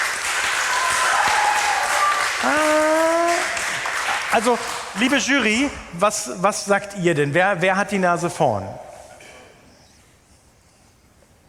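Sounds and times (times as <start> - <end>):
audience applause after a presentation at a contest: 0.0 - 5.4
speech: 4.3 - 8.9.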